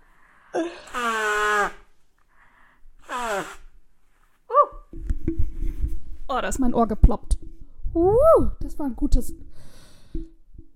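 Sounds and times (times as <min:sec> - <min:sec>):
speech: 0:00.6 - 0:00.8, 0:06.3 - 0:07.4, 0:08.0 - 0:10.3
person blowing nose: 0:00.6 - 0:01.9, 0:03.0 - 0:03.8
sharp snort: 0:03.0 - 0:03.7.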